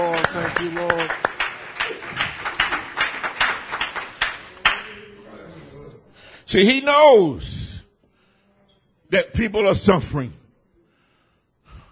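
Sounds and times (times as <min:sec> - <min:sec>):
group clapping hands: 0:00.0 - 0:05.1
speech: 0:06.5 - 0:07.6, 0:09.1 - 0:10.4.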